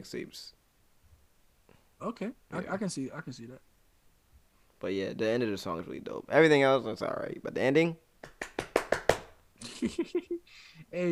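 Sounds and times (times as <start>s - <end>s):
speech: 0.0s - 0.6s, 2.0s - 3.7s, 4.8s - 8.6s, 9.8s - 11.0s
slapping on skin: 8.2s - 9.4s.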